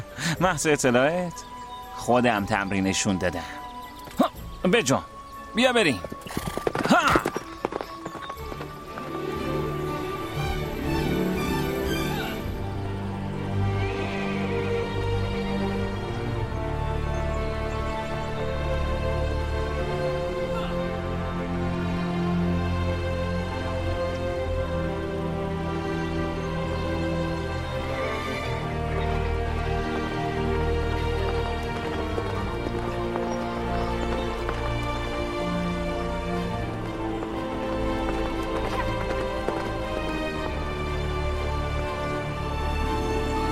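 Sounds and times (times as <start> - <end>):
orchestral music: 0.0 - 43.5
speech: 0.3 - 3.6, 4.6 - 6.4
horse hooves clip-clopping: 5.9 - 10.7, 28.4 - 42.1.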